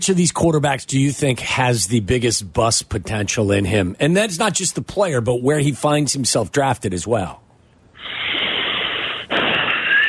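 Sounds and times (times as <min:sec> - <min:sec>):
speech: 0:00.0 - 0:07.4
loud breath into the microphone: 0:08.0 - 0:10.0.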